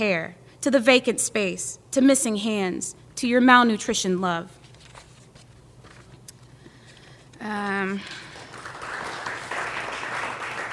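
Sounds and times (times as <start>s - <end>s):
speech: 0.0s - 4.6s, 7.4s - 8.2s
audience clapping: 8.0s - 10.7s.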